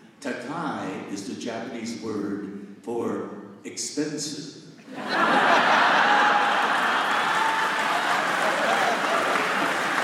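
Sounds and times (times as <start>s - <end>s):
speech: 0.6s - 5.8s
laughter: 4.8s - 7.2s
audience applause: 5.3s - 10.0s.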